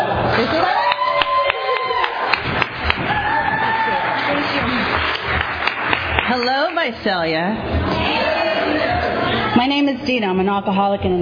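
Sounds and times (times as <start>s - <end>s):
Valley Group recovery meeting audience clapping in Visalia: 0.0s - 7.0s
crowd cheering: 0.0s - 7.0s, 7.7s - 9.6s
whistling: 6.3s - 6.9s
speech: 6.9s - 8.0s, 9.5s - 11.2s.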